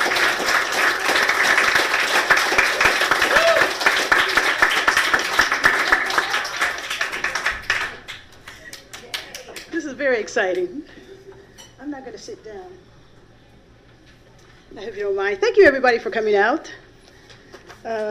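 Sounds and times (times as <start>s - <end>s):
audience applause welcoming a poet to the stage at a reading: 0.0s - 9.7s
speech: 10.4s - 11.2s, 11.8s - 13.0s, 14.7s - 16.8s, 17.8s - 18.1s.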